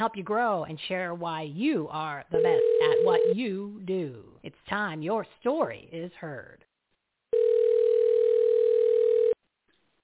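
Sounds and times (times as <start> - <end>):
speech: 0.0 - 6.7
telephone dial tone while dialing in for a call: 7.3 - 9.4.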